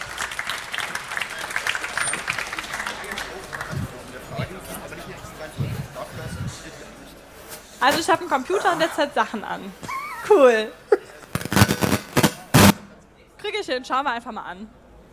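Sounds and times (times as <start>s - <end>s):
audience applause: 0.0s - 5.7s
low murmuring voices: 0.1s - 13.2s
speech: 7.8s - 10.8s, 13.7s - 14.8s.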